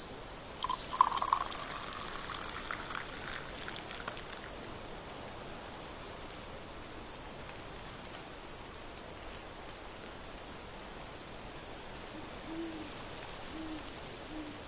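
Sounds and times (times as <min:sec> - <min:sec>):
low steady hiss on a porch in autumn: 0:00.0 - 0:14.6
rustling burst: 0:06.1 - 0:10.6.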